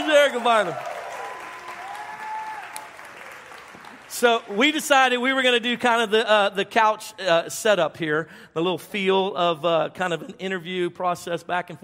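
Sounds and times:
church congregation applause on Missions Sunday: 0:00.0 - 0:05.4
speech: 0:00.2 - 0:00.9, 0:04.1 - 0:11.8.

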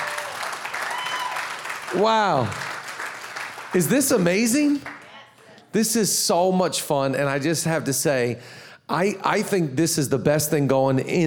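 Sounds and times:
audience applause: 0:00.0 - 0:05.2
speech: 0:01.9 - 0:02.7, 0:03.7 - 0:05.0, 0:05.7 - 0:11.2.

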